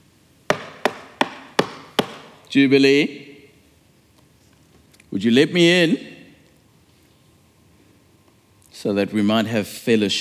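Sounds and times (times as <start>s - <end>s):
knocking on a wooden door: 0.5s - 2.4s
speech: 2.5s - 3.3s, 5.2s - 6.1s, 8.8s - 10.1s.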